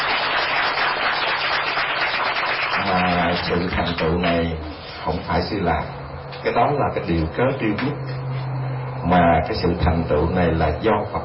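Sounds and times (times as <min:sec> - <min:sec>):
long applause from a Buddhist audience at a temple: 0:00.0 - 0:04.2
speech: 0:02.9 - 0:08.2, 0:09.0 - 0:11.2.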